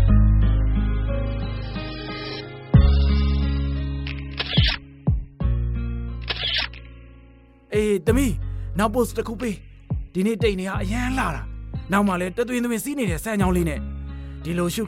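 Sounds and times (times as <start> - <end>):
music: 0.0 - 14.8
camera shutter clicks as a father photographs his daughter outdoors in China: 4.0 - 4.8, 6.2 - 6.9
speech: 7.8 - 14.8.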